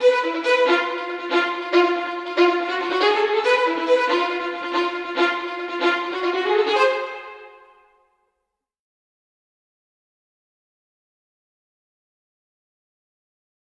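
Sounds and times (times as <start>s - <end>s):
violin: 0.0s - 7.8s.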